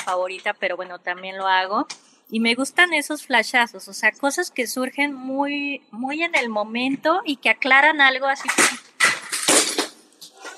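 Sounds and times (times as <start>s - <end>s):
speech: 0.0s - 8.8s
vase falling over: 8.4s - 10.5s.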